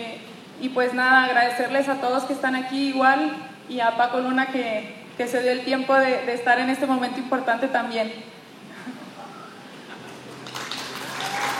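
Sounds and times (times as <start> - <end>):
speech: 0.6 - 8.3
audience applause: 10.2 - 11.5.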